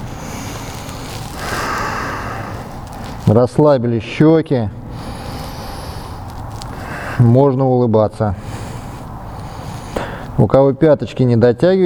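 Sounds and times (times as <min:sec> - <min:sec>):
ujjayi breathing during a yoga warm-up: 0:00.0 - 0:03.3, 0:04.8 - 0:07.4, 0:08.4 - 0:10.4
speech: 0:03.3 - 0:04.8, 0:07.2 - 0:08.4, 0:10.4 - 0:11.8.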